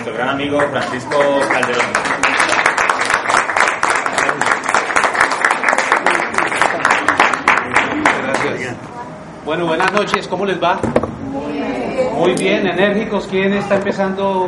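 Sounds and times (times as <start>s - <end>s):
speech: 0.1s - 2.4s, 9.5s - 14.4s
audience applause: 0.6s - 8.6s.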